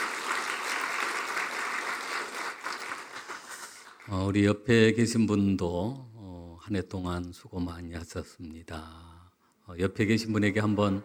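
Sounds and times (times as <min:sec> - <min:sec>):
audience applause: 0:00.0 - 0:04.1
speech: 0:04.1 - 0:06.1, 0:06.7 - 0:09.1, 0:09.7 - 0:11.0.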